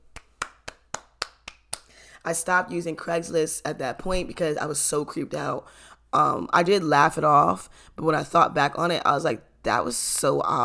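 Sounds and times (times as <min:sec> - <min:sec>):
clapping: 0:00.1 - 0:01.9
speech: 0:02.2 - 0:10.6.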